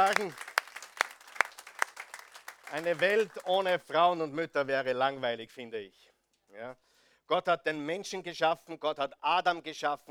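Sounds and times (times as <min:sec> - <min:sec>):
speech: 0:00.0 - 0:00.5, 0:02.7 - 0:10.0
audience applause: 0:00.0 - 0:03.9.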